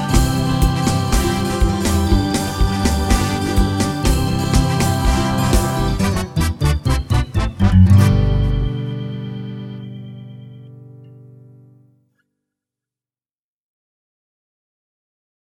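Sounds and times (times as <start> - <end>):
township jive music: 0.0 - 11.0.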